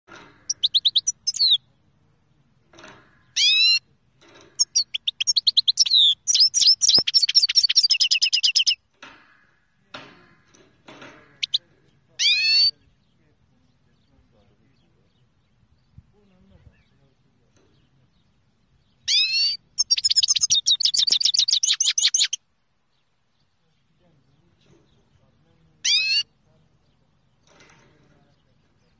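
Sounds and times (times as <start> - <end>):
finch singing fast high chirps: 0.3 - 1.8, 3.2 - 3.8, 4.6 - 8.8, 11.3 - 22.4, 23.0 - 27.4.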